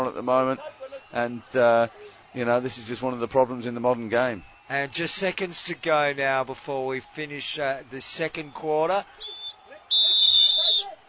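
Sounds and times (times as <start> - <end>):
speech: 0.1 - 9.4
two umpires blowing whistles: 9.2 - 11.0.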